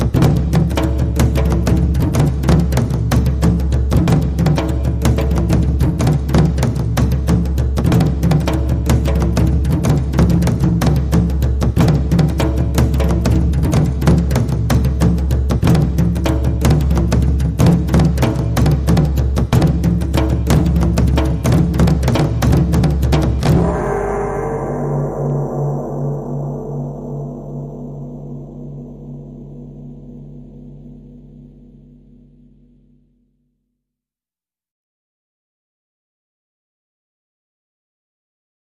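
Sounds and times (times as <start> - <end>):
taiko drums: 0.0 - 29.0.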